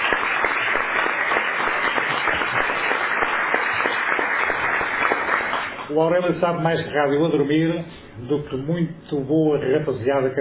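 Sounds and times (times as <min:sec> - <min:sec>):
audience applause: 0:00.0 - 0:05.9
speech: 0:05.9 - 0:10.3.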